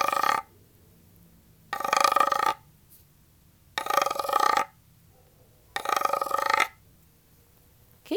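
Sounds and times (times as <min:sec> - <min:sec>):
wooden frog percussion instrument croaking: 0:00.0 - 0:00.5, 0:01.7 - 0:02.7, 0:03.8 - 0:04.8, 0:05.8 - 0:06.8.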